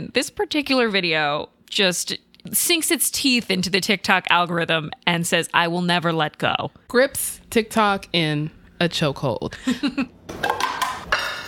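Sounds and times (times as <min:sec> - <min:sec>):
speech: 0:00.0 - 0:10.6
utensils clinking and scraping against a dish while making a salmon rice bowl: 0:10.5 - 0:11.4.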